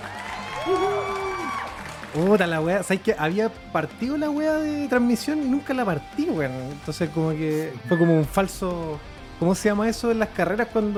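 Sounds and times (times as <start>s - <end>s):
loud wavering whoop: 0.0s - 1.9s
voices cheering: 0.0s - 2.9s
crowd applauding: 0.0s - 3.4s
speech: 2.1s - 10.9s.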